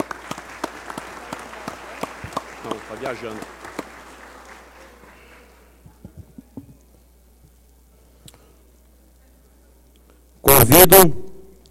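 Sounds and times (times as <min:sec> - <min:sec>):
round of applause: 0:00.0 - 0:06.1
speech: 0:02.9 - 0:03.6, 0:10.8 - 0:11.2.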